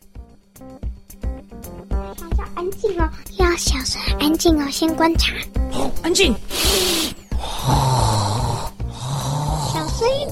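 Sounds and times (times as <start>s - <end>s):
speech: 0.6s - 0.9s, 2.6s - 6.9s
loud exaggerated breathing of a person hiding: 5.6s - 10.3s.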